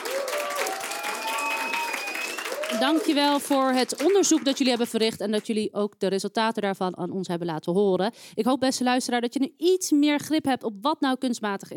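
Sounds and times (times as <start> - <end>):
audience applause: 0.0 - 4.8
speech: 2.7 - 11.7.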